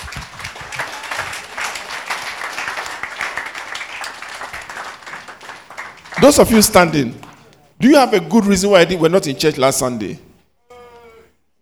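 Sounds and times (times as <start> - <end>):
audience applause: 0.0 - 7.6
speech: 6.2 - 7.2, 7.8 - 10.2.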